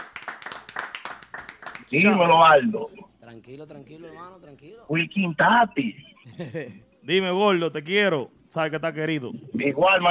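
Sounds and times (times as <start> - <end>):
applause: 0.0 - 1.9
speech: 1.9 - 10.0
laughter: 6.2 - 6.9.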